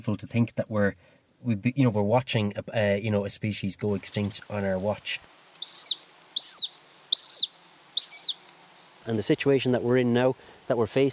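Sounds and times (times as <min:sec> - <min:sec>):
speech: 0:00.0 - 0:05.9, 0:09.0 - 0:11.1
hen harrier whistled squeals: 0:05.6 - 0:08.4.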